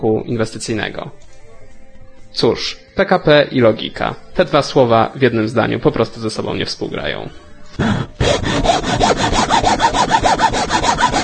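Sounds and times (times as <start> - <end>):
speech: 0.0 - 1.4, 2.4 - 8.0
hand saw cutting through wood: 7.8 - 11.2.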